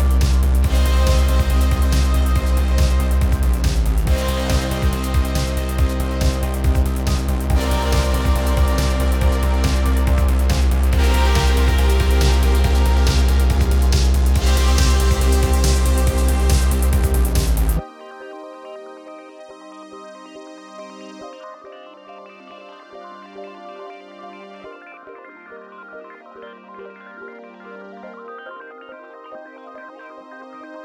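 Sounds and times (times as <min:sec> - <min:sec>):
fight music: 0:00.0 - 0:18.0.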